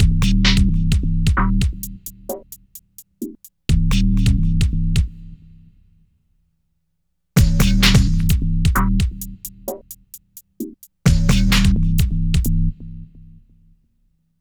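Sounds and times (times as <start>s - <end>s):
hardcore breakbeat in B-flat minor: 0.0s - 5.1s, 7.4s - 12.6s.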